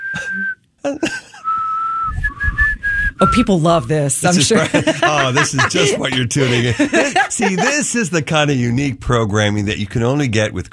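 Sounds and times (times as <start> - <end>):
person whistling: 0.0 - 0.6, 1.4 - 3.5
speech: 0.1 - 1.2, 3.2 - 10.7
laughter: 0.2 - 1.4, 4.3 - 8.6.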